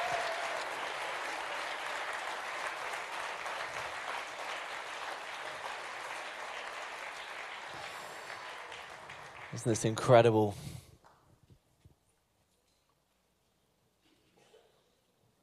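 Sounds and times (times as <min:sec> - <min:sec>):
audience cheering: 0:00.0 - 0:10.2
applause: 0:00.0 - 0:11.2
speech: 0:09.6 - 0:10.8.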